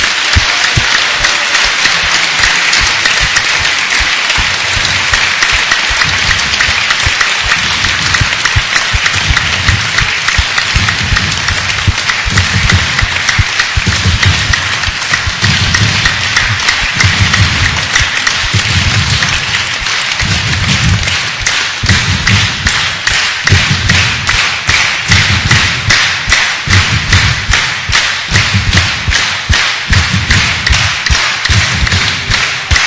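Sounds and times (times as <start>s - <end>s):
audience applause: 0.0s - 32.8s.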